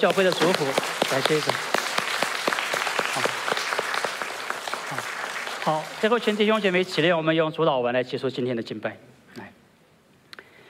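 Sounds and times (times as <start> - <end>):
speech: 0.0 - 1.8, 3.2 - 3.4, 4.9 - 9.1
audience applause: 0.0 - 7.0.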